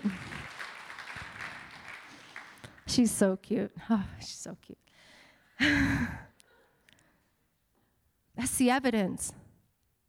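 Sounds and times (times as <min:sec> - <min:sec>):
audience clapping: 0:00.0 - 0:03.0
speech: 0:03.0 - 0:04.9, 0:05.6 - 0:06.3, 0:08.4 - 0:09.4.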